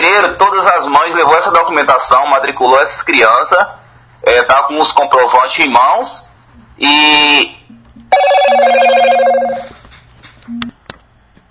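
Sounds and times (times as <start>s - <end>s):
speech: 0.2s - 9.7s
WhatsApp incoming call ringing tone: 8.1s - 9.8s.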